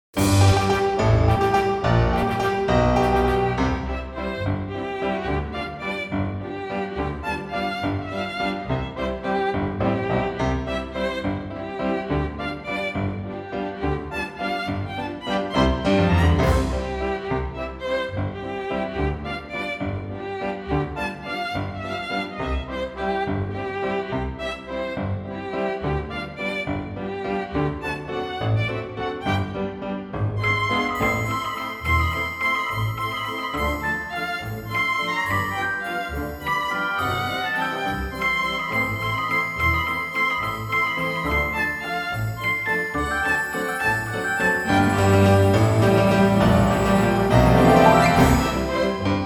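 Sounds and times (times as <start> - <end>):
waltz music: 0.2 - 49.2.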